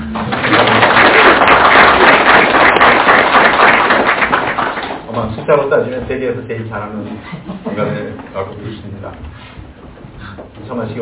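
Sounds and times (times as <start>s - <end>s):
audience applause: 0.0s - 5.1s
speech: 6.1s - 9.4s, 10.7s - 11.0s.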